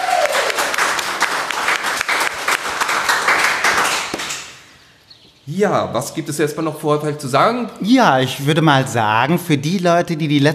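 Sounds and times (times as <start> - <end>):
crowd applauding: 0.0 - 4.6
speech: 5.5 - 10.5.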